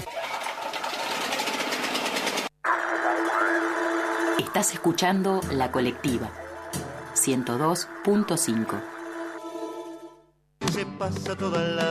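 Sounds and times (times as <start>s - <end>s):
electric generator engine running: 0.0s - 10.2s
speech: 4.4s - 6.4s, 7.2s - 8.9s, 11.0s - 11.8s.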